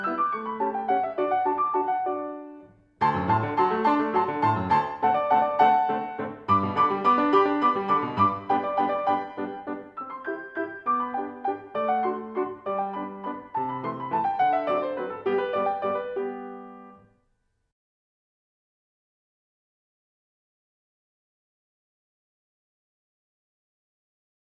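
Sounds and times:
major etude allegro in waltz tempo: 0.0 - 17.0.

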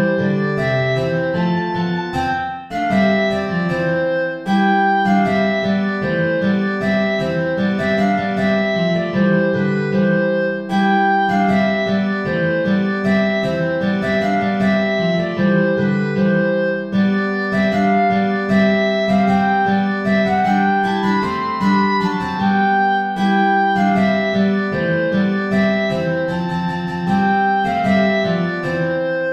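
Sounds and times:
Christmas carol backing track without guitar: 0.0 - 29.3.

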